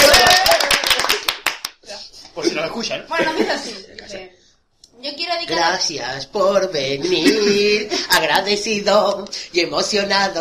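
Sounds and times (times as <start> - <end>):
audience applause: 0.0 - 1.7
speech: 2.7 - 4.4, 5.4 - 10.3
laughter: 7.0 - 8.2.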